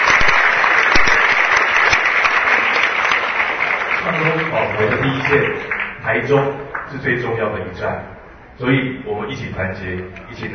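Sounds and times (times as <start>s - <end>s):
audience applause: 0.0s - 7.1s
speech: 5.3s - 10.5s.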